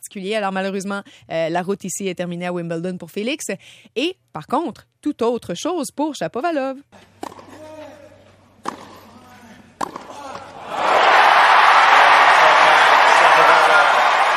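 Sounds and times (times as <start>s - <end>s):
speech: 0.1s - 7.1s
tennis crowd cheering and applause: 10.6s - 14.3s.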